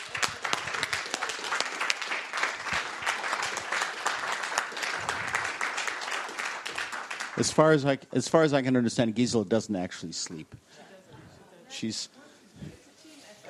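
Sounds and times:
crowd applauding: 0.0s - 7.8s
speech: 7.4s - 10.6s, 11.8s - 12.7s.

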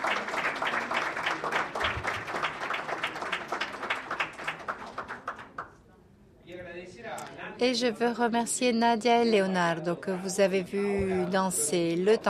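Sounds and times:
audience applause: 0.0s - 5.7s
speech: 7.6s - 12.2s.

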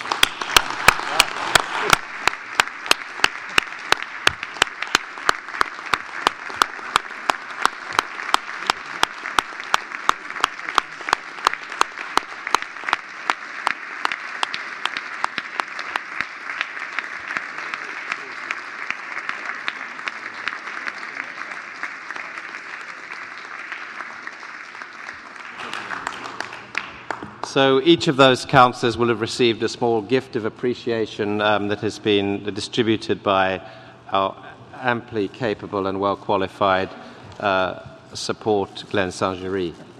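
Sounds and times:
crowd applause: 0.0s - 27.8s
speech: 27.6s - 39.8s.

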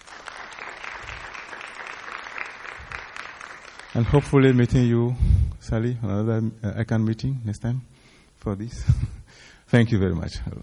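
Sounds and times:
audience applause: 0.0s - 4.8s
speech: 4.0s - 9.1s, 9.7s - 10.6s.

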